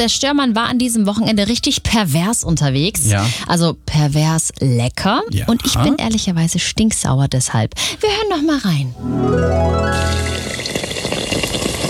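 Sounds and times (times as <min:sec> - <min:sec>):
speech: 0:00.0 - 0:10.3
schnitzel sizzling: 0:09.0 - 0:11.8.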